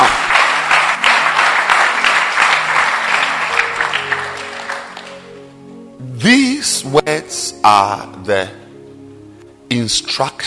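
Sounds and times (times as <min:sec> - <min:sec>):
congregation clapping during a church sermon: 0:00.0 - 0:05.6
speech: 0:06.2 - 0:08.6, 0:09.7 - 0:10.4.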